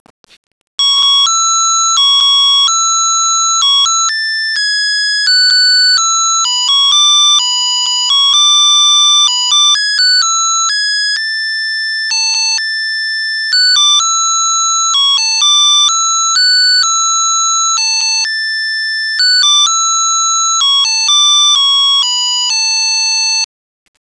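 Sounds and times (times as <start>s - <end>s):
lullaby melody: 0.8s - 23.2s.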